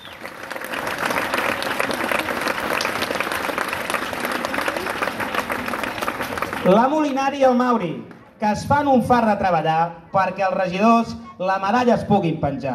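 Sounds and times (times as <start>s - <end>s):
audience applause: 0.0s - 7.2s
speech: 6.7s - 12.7s.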